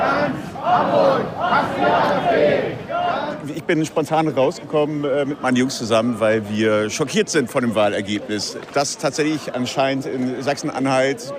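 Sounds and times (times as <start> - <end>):
protesters shouting in unison at a demonstration against the AfD: 0.0 - 3.5
speech: 3.5 - 11.3.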